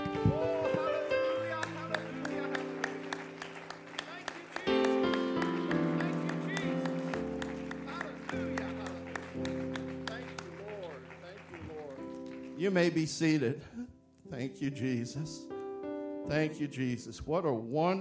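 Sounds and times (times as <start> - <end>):
audience clapping along: 0.0 - 13.3
sustained keyboard chords: 0.0 - 17.8
speech: 12.6 - 15.5, 16.3 - 18.0.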